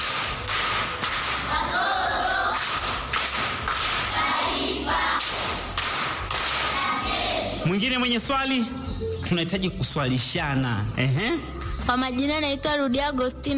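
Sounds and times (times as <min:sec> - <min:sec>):
pupils clapping in primary school class: 0:00.0 - 0:07.4
speech: 0:07.6 - 0:13.5.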